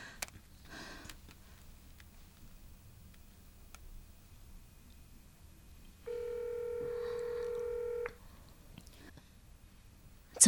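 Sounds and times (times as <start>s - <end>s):
faint hiss: 0.0s - 10.4s
phone being dialed with clicks and short beeps: 6.1s - 8.2s.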